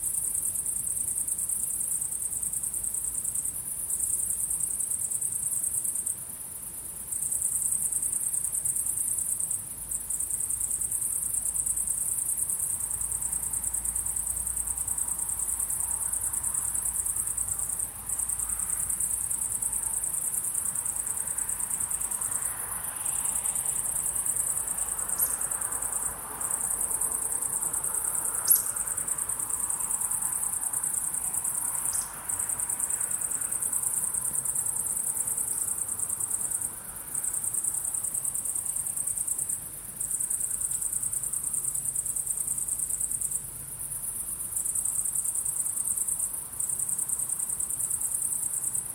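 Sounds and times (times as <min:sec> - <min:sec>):
crickets chirping: 0:00.0 - 0:48.9.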